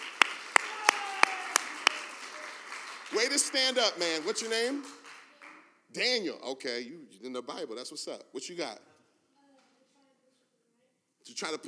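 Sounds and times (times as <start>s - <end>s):
audience applause: 0.0s - 5.6s
speech: 3.1s - 5.0s, 5.9s - 8.9s, 11.3s - 11.6s.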